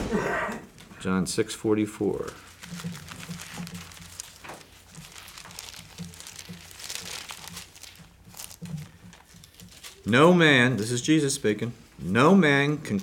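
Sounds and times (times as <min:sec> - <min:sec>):
speech: 0:01.0 - 0:03.1, 0:10.1 - 0:13.0
thin Bible pages being turned: 0:02.1 - 0:11.8.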